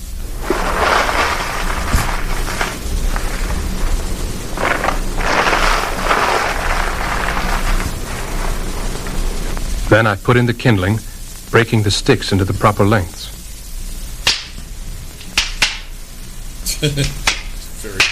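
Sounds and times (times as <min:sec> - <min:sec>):
newspaper crinkling: 0:00.0 - 0:09.9
speech: 0:09.9 - 0:13.4, 0:16.8 - 0:17.2.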